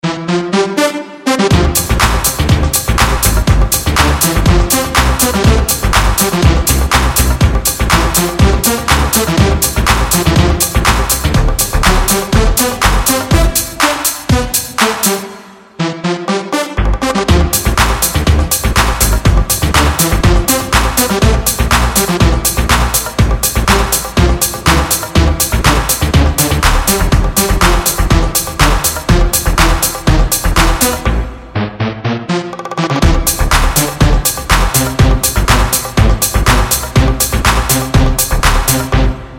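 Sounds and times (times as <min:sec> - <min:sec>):
instrumental music: 0:00.0 - 0:39.3.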